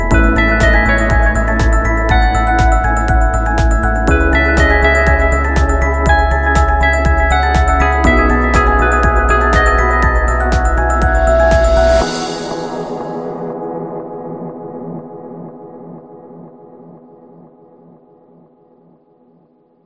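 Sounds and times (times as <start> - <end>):
uplifting bells: 0.0 - 13.8.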